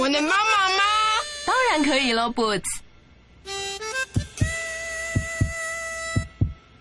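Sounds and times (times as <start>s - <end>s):
speech: 0.0s - 0.5s, 1.5s - 2.8s
heartbeat: 4.1s - 6.6s.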